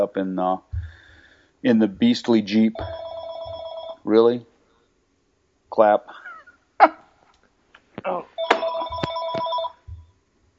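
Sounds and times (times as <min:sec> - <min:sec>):
speech: 0:00.0 - 0:00.7, 0:01.6 - 0:03.0, 0:04.0 - 0:04.5, 0:05.7 - 0:06.2, 0:06.8 - 0:07.0, 0:08.0 - 0:08.3
telephone ringing for an incoming call: 0:02.7 - 0:04.0, 0:08.4 - 0:10.0.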